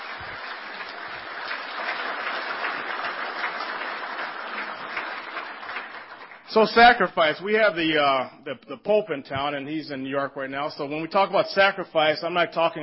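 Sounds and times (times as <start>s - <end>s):
audience applause: 0.0s - 7.0s
speech: 6.5s - 12.8s.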